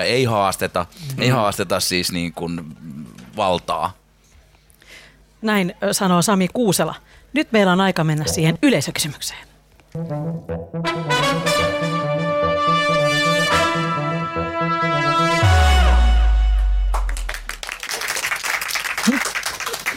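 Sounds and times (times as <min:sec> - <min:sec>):
speech: 0:00.0 - 0:04.0, 0:05.4 - 0:11.8
tonal musical jingle: 0:10.0 - 0:17.6
audience applause: 0:16.9 - 0:19.9.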